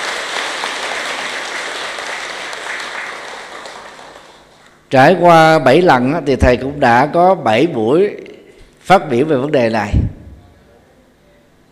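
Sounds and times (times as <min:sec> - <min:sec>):
audience applause: 0:00.0 - 0:04.6
speech: 0:04.9 - 0:08.2, 0:08.9 - 0:10.0.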